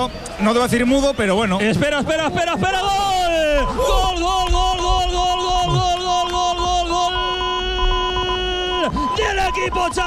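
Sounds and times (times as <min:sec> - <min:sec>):
speech: 0:00.0 - 0:05.9, 0:08.9 - 0:10.0
Villarreal away fans roaring in the stands at El Sardinero: 0:00.0 - 0:09.2
horn-like tones in the football stands: 0:06.9 - 0:09.6.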